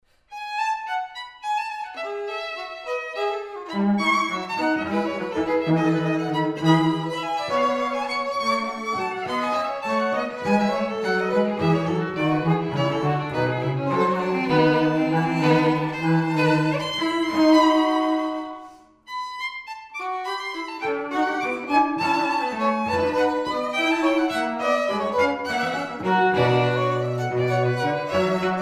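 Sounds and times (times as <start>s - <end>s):
musical trio: 1.9s - 28.6s.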